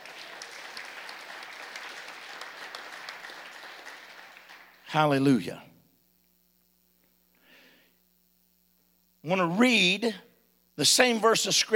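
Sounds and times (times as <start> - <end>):
audience clapping: 0.0 - 5.2
speech: 4.9 - 5.7, 9.3 - 11.7.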